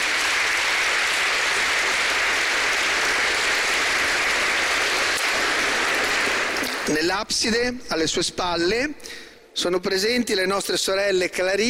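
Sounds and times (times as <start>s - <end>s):
audience applause for youth orchestra: 0.0s - 7.1s
speech: 6.9s - 11.6s.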